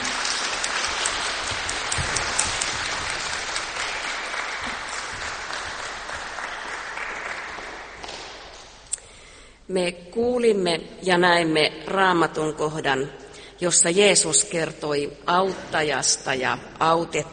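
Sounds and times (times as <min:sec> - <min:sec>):
audience applause: 0:00.0 - 0:08.8
speech: 0:09.7 - 0:17.3.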